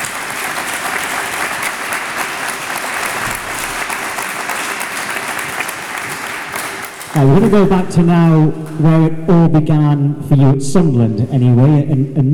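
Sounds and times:
audience round of applause: 0.0s - 8.9s
speech: 7.2s - 12.3s.

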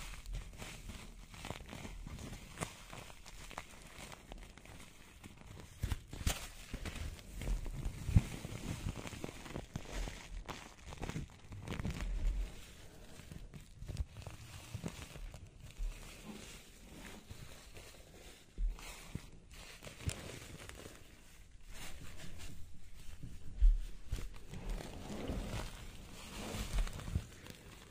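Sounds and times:
hair roller handled, rustling and crinkling: 0.0s - 27.9s.

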